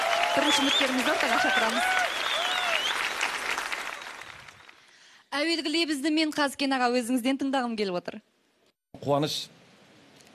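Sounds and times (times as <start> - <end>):
audience applause at a contest event: 0.0 - 5.0
speech: 0.4 - 2.3, 5.4 - 8.3, 9.0 - 9.6
whistle: 2.0 - 3.1.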